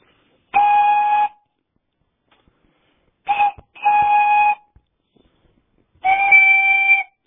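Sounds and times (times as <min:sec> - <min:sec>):
toy whistle made from a knotweed stalk blown: 0:00.5 - 0:01.4, 0:03.3 - 0:04.8, 0:06.0 - 0:07.2.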